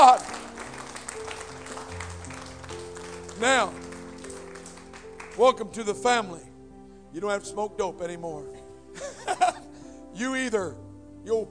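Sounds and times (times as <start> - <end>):
church congregation clapping in praise: 0.0 - 6.2
speech: 3.4 - 3.8, 5.4 - 6.5, 7.1 - 8.6, 10.2 - 11.4.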